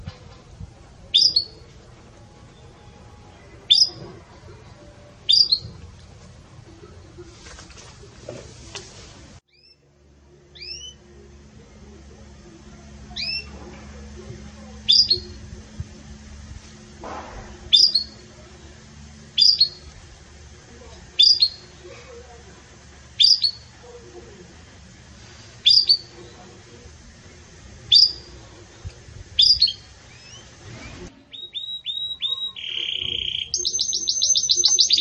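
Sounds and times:
quiet background hum: 0.0 - 34.9
Belgian canary chirping and trilling: 1.1 - 1.6, 3.6 - 4.3, 5.2 - 5.8, 9.5 - 9.8, 10.5 - 11.0, 13.1 - 13.6, 14.8 - 15.4, 17.7 - 18.2, 19.3 - 19.9, 21.2 - 22.2, 23.2 - 24.0, 25.6 - 26.2, 27.9 - 28.3, 29.4 - 30.5, 31.3 - 34.9.

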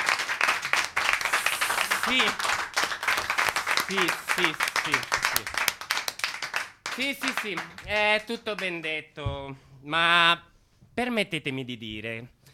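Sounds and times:
audience applause: 0.0 - 8.7
speech: 2.0 - 2.5, 3.9 - 5.7, 7.0 - 12.4.

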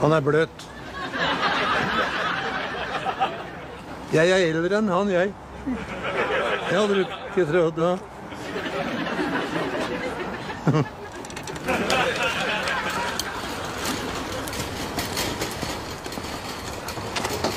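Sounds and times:
speech: 0.0 - 1.2, 4.1 - 9.0, 10.7 - 10.9
tram rumbling and rattling past: 0.6 - 17.5
laughter: 0.7 - 4.1, 5.5 - 14.8.

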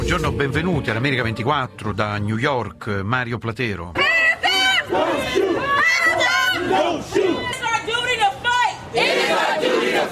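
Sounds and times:
speech: 0.2 - 4.0, 4.9 - 7.6
protest crowd chanting in Washington: 4.0 - 10.0.

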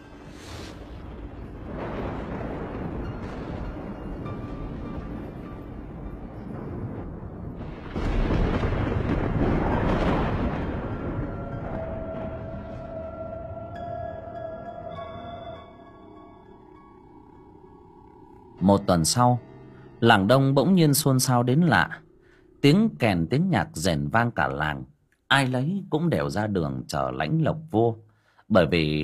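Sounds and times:
deep rumbling thunder from lightning bolts: 0.7 - 15.0
speech: 18.7 - 22.0, 22.6 - 29.0.

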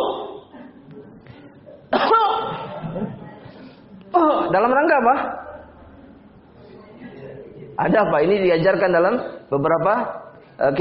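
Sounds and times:
person coughing: 1.8 - 3.2
speech: 4.2 - 5.4, 7.8 - 10.7.

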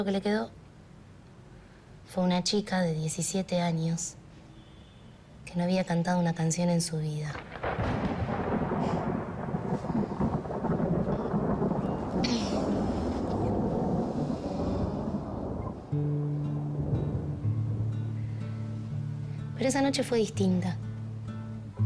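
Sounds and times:
speech: 0.0 - 0.6, 2.1 - 4.2, 5.5 - 8.0, 19.7 - 20.8
deep thunder rumbling: 7.3 - 18.2
heavy rain pouring: 7.3 - 19.4.

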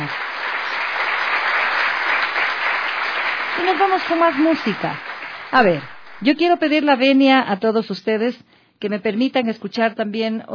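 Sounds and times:
applause from a group of people: 0.0 - 6.6
speech: 3.6 - 10.5.

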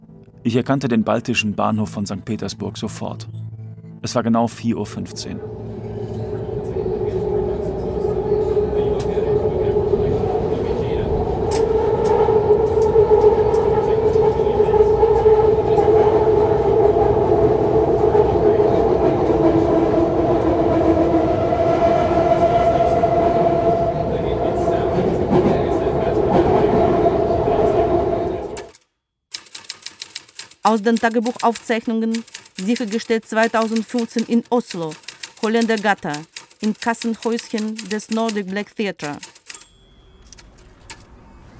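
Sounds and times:
speech: 0.4 - 5.8, 30.8 - 39.3
train racing closely past: 5.1 - 28.7.

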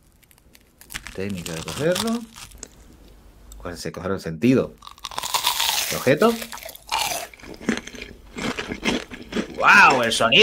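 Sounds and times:
chewing a crunchy churro: 0.0 - 2.9, 4.8 - 10.2
speech: 1.2 - 2.5, 3.6 - 4.8, 5.9 - 6.6, 9.6 - 10.4.

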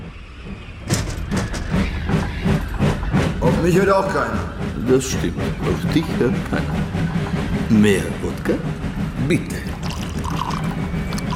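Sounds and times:
train passing on rails: 0.0 - 11.3
speech: 3.6 - 6.9, 7.7 - 8.7, 9.3 - 9.7.

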